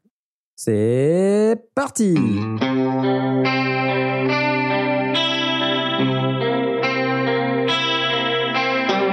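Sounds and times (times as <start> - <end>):
speech: 0.6 - 3.7
electric guitar chords played through a rotary speaker effect: 2.2 - 9.1.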